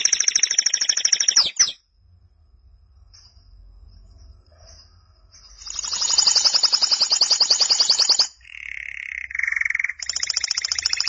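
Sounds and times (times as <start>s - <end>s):
canary trilling: 0.0s - 1.8s, 5.5s - 11.0s.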